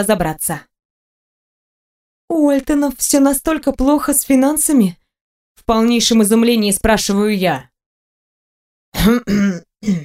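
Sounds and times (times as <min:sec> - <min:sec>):
speech: 0:00.0 - 0:00.7, 0:02.3 - 0:05.0, 0:05.6 - 0:07.7, 0:08.9 - 0:10.0
man giving a gruff throat-clearing cough: 0:09.0 - 0:10.0.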